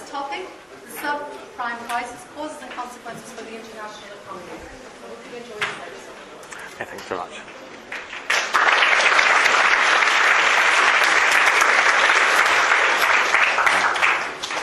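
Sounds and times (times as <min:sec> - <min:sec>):
speech: 0:00.4 - 0:06.2, 0:06.8 - 0:07.6
room full of people clapping: 0:07.4 - 0:14.6.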